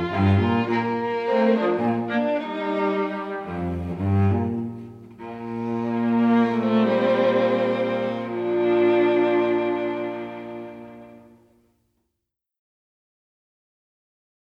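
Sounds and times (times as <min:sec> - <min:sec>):
string quartet playing a spiritual: 0:00.0 - 0:11.5.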